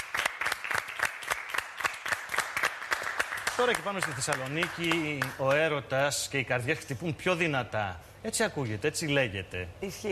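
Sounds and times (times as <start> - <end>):
audience applause: 0.0 - 5.7
speech: 3.6 - 10.1.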